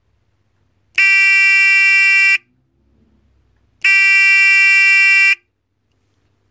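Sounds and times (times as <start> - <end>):
buzzer: 1.0 - 2.4, 3.8 - 5.4.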